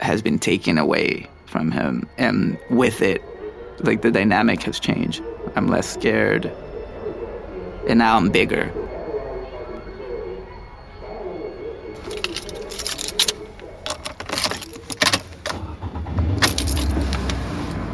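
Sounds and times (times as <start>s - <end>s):
speech: 0.1s - 6.6s, 7.8s - 8.8s
keys jangling: 12.0s - 15.7s, 16.4s - 17.8s.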